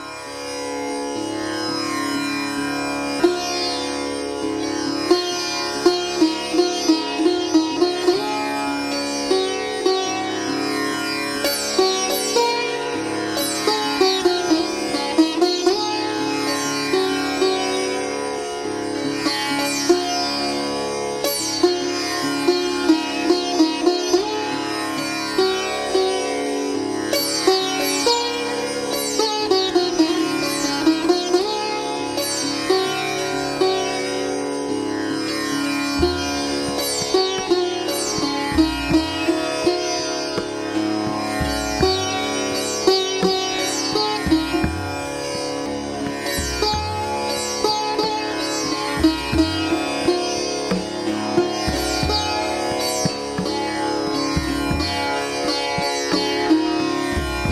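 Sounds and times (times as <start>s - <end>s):
sitar: 0.0s - 57.5s
tabla: 0.0s - 57.5s
tampura drone: 35.1s - 57.5s.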